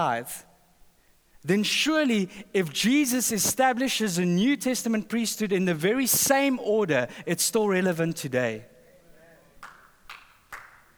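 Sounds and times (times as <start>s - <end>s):
speech: 0.0s - 0.5s, 1.4s - 8.7s
sharp crisp hand claps: 9.6s - 10.9s.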